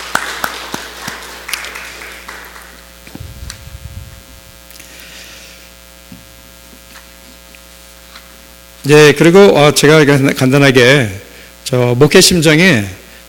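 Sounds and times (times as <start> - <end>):
audience applause: 0.0 - 3.6
steady low electrical hum: 0.0 - 13.2
speech: 8.8 - 13.2.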